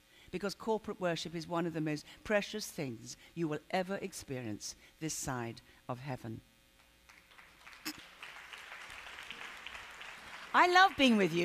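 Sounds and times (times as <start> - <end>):
speech: 0.3 - 6.5, 10.6 - 11.4
crowd clapping: 7.1 - 11.4.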